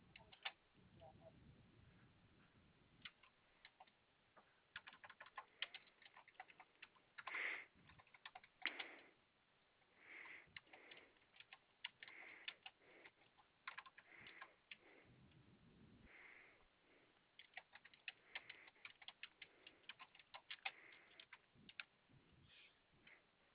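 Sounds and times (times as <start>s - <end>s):
typing on a computer keyboard: 0.0s - 0.6s, 3.0s - 4.0s, 4.7s - 9.0s, 10.4s - 14.8s, 17.4s - 21.9s.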